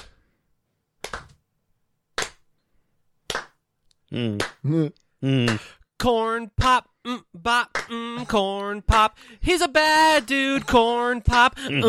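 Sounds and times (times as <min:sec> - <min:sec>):
hand clapping along: 0:01.0 - 0:01.4, 0:02.2 - 0:02.5, 0:03.3 - 0:03.6, 0:04.4 - 0:04.6, 0:05.4 - 0:05.7, 0:07.7 - 0:08.4
speech: 0:04.1 - 0:11.8.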